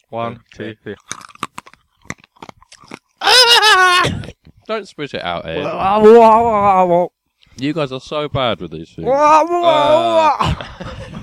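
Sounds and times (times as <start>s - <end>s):
speech: 0.1s - 1.2s, 4.0s - 11.0s
licorice-flavoured candies crunched between the teeth: 0.5s - 3.2s.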